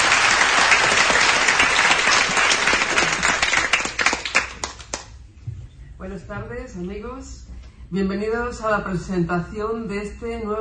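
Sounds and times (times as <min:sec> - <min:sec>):
audience applause: 0:00.0 - 0:05.0
speech: 0:06.6 - 0:10.5.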